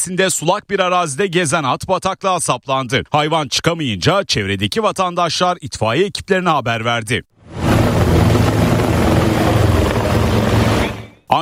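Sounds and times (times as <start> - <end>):
speech: 0.0 - 8.5
rescue helicopter rotor droning over a marshy pond: 7.4 - 11.2.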